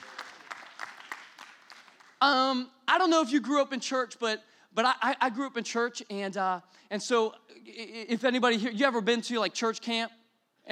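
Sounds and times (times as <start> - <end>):
church congregation clapping during a service: 0.0 - 2.3
speech: 2.2 - 10.7.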